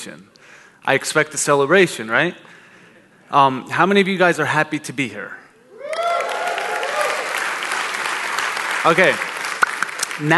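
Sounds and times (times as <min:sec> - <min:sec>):
speech: 0:00.0 - 0:02.6, 0:03.3 - 0:05.4, 0:08.8 - 0:09.3, 0:10.2 - 0:10.3
audience clapping: 0:05.9 - 0:10.3.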